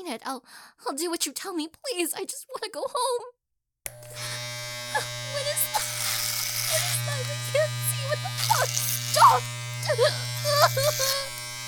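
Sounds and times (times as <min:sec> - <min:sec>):
speech: 0:00.1 - 0:04.4, 0:05.0 - 0:05.2, 0:08.6 - 0:11.3
electric clippers shaving hair off a person's head: 0:03.9 - 0:11.6.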